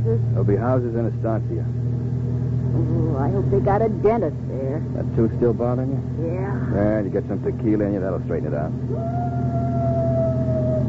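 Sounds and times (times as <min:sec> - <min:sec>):
low rumble: 0:00.0 - 0:10.8
speech: 0:00.1 - 0:01.9, 0:02.7 - 0:09.4
coyotes howling: 0:08.8 - 0:10.8.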